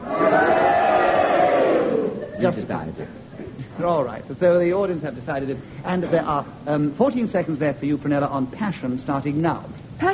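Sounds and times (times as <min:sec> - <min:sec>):
studio audience cheering: 0:00.0 - 0:02.4
speech: 0:02.4 - 0:10.1.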